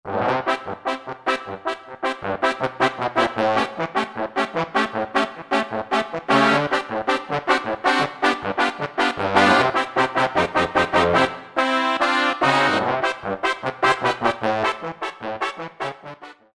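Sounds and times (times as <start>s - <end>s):
trumpets: 0.1s - 16.4s
trombones: 0.1s - 16.5s.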